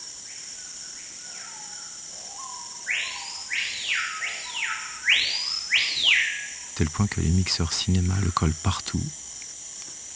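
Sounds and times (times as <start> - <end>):
Amazonian bird song, archetypal rainforest call: 0.6 - 6.7
speech: 6.8 - 9.2.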